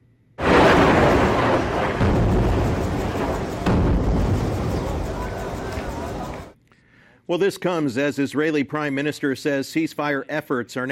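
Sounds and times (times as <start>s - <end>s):
airstrike blast in Khan Yunis, Gaza Strip: 0.4s - 6.5s
long rolling rumble of airstrike: 0.4s - 6.6s
speech: 7.3s - 10.8s.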